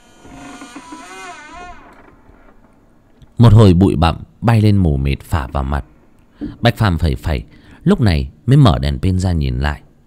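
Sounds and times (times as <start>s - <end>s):
old rotting wooden door creaking open: 0.0s - 3.0s
speech: 3.4s - 9.8s.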